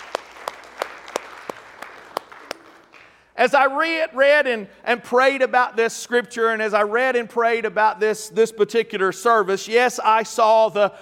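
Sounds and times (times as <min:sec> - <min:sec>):
audience hand clapping: 0:00.0 - 0:03.4
speech: 0:03.4 - 0:11.0.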